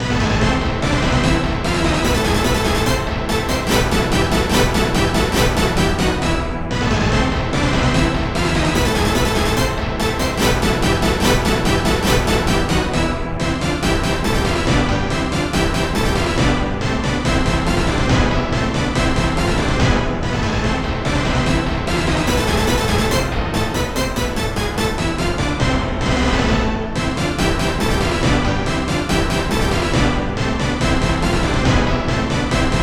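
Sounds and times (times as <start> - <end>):
orchestra hit: 0.0 - 32.8.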